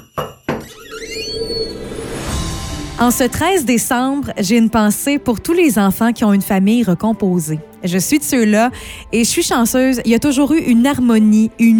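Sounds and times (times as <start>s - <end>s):
sharp knocks in a door opening sound effect: 0.0s - 0.8s
door opening sound effect with a wavering drawn-out creak: 0.0s - 2.4s
speech: 3.0s - 11.7s.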